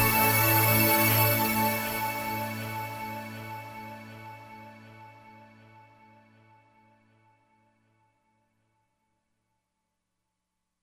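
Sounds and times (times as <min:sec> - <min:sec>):
Roland Fantom XR synthesizer: 0:00.0 - 0:07.3.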